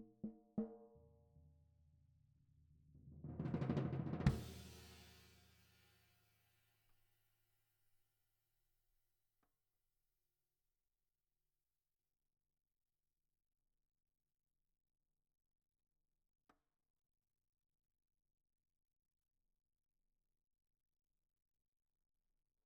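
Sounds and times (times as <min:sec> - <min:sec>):
snare drum: 0:03.3 - 0:05.3.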